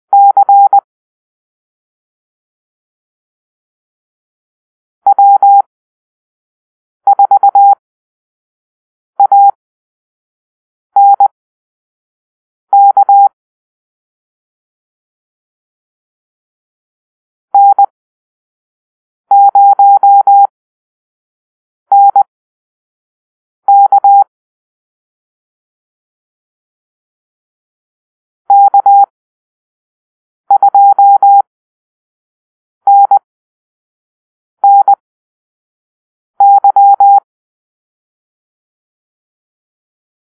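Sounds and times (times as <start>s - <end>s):
morse code call-sign beeps: 0.1s - 0.8s, 5.1s - 5.7s, 7.1s - 7.8s, 9.2s - 9.6s, 11.0s - 11.4s, 12.7s - 13.4s, 17.6s - 17.9s, 19.3s - 20.5s, 21.9s - 22.3s, 23.7s - 24.3s, 28.5s - 29.1s, 30.5s - 31.5s, 32.9s - 33.2s, 34.6s - 35.0s, 36.4s - 37.3s.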